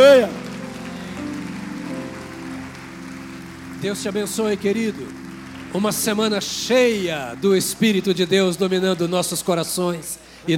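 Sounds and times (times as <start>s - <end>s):
speech: 0.0s - 0.4s, 3.8s - 10.5s
audience applauding: 0.0s - 10.0s.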